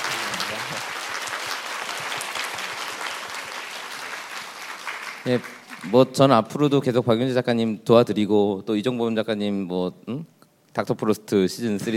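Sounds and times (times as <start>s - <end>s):
crowd applause: 0.0s - 6.2s
speech: 5.2s - 11.9s.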